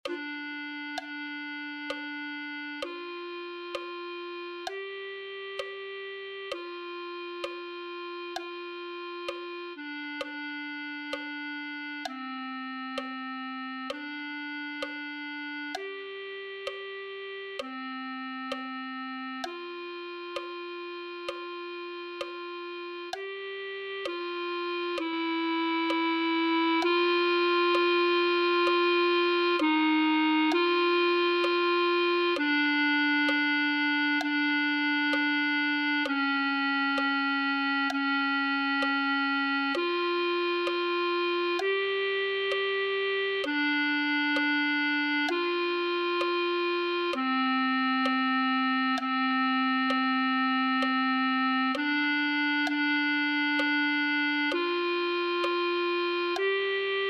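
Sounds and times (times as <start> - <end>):
clarinet: 0.0 - 57.0.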